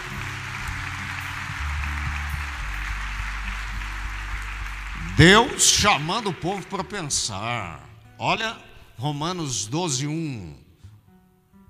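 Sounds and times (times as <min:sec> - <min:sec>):
audience applause: 0:00.0 - 0:07.6
speech: 0:05.2 - 0:10.6.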